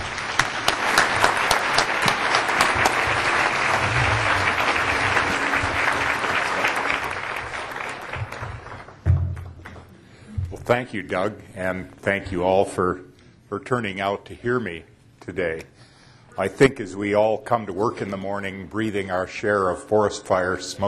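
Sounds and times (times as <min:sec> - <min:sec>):
audience applause welcoming a speaker: 0:00.0 - 0:09.9
speech: 0:10.7 - 0:15.7, 0:16.4 - 0:20.8.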